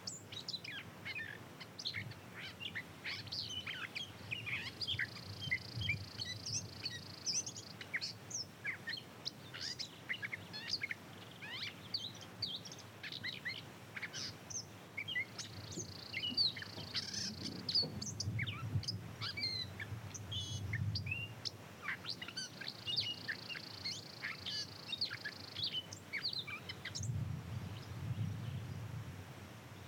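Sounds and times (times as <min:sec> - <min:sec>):
birds in Montana: 0:00.0 - 0:29.0
rumble: 0:27.0 - 0:29.4.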